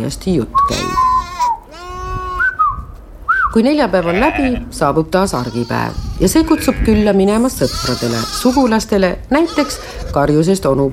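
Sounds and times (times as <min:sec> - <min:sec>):
speech: 0:00.0 - 0:01.0, 0:03.6 - 0:10.9
goats and sheep bleating at market: 0:01.1 - 0:02.5, 0:03.9 - 0:10.4.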